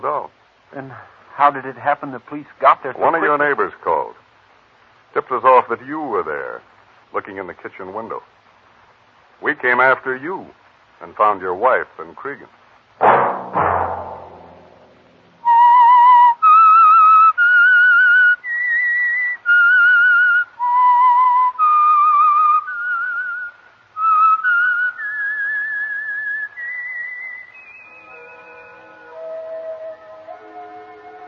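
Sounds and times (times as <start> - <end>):
speech: 0.0 - 4.2, 5.2 - 8.3, 9.4 - 12.6
sharp thud: 13.0 - 15.4
lone whistler whistling a slow melody: 15.4 - 31.2.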